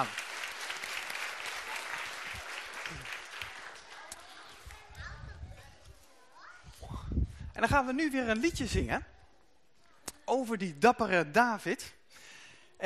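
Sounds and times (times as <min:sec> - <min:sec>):
speech: 0:00.0 - 0:00.2, 0:07.6 - 0:09.2, 0:10.3 - 0:12.0
applause at a gathering where songs are sung: 0:00.0 - 0:05.0.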